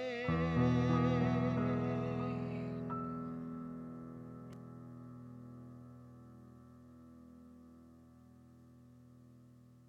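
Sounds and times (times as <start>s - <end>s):
baritone singing: 0.0s - 3.4s.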